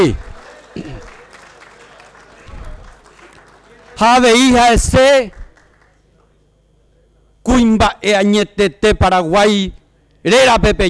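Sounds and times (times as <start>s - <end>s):
speech: 0.0s - 0.2s, 4.0s - 5.4s, 7.4s - 10.8s
applause: 0.0s - 6.3s.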